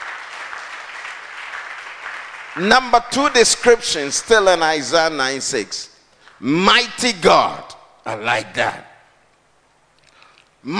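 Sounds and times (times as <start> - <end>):
church congregation clapping during a sermon: 0.0 - 5.2
speech: 2.6 - 8.9.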